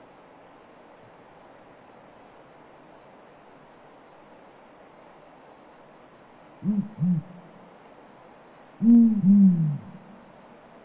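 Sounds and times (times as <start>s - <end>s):
Bubo blakistoni calling: 6.6s - 7.6s, 8.8s - 10.2s.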